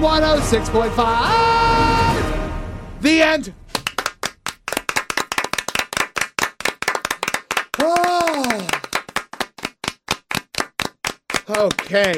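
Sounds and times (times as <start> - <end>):
speech: 0.2 - 2.0, 3.0 - 3.6, 11.4 - 12.1
clapping: 3.7 - 12.1.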